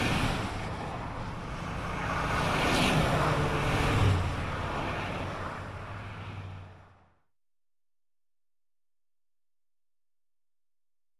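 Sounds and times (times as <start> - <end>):
cars passing by on freeway: 0.0 - 7.2.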